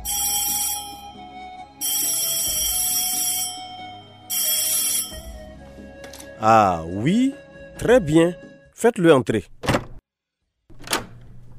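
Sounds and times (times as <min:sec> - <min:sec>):
telephone ringing: 0:00.0 - 0:05.4
speech: 0:06.4 - 0:09.5.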